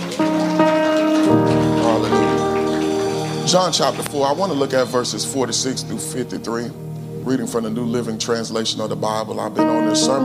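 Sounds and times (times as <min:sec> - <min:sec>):
audience applause: 0:00.0 - 0:06.0
sustained keyboard chords: 0:00.0 - 0:10.2
speech: 0:03.5 - 0:10.2.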